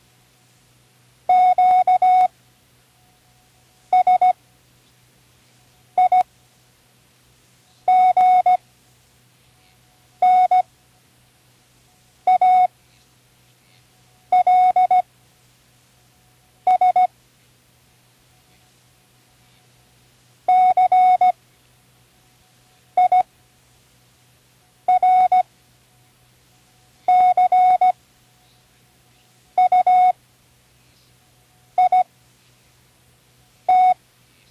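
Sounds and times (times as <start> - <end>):
Morse code spelling words: 1.3 - 2.3, 3.9 - 4.4, 6.0 - 6.2, 7.9 - 8.6, 10.2 - 10.6, 12.3 - 12.7, 14.3 - 15.0, 16.7 - 17.1, 20.5 - 21.4, 23.0 - 23.3, 24.9 - 25.4, 27.1 - 28.0, 29.6 - 30.2, 31.8 - 32.1, 33.7 - 34.0.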